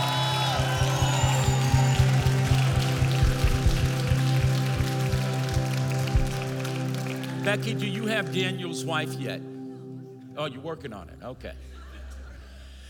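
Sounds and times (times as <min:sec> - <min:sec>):
audience clapping and cheering: 0:00.0 - 0:09.1
speech: 0:07.5 - 0:09.5, 0:10.4 - 0:11.8
laughter: 0:11.6 - 0:12.8.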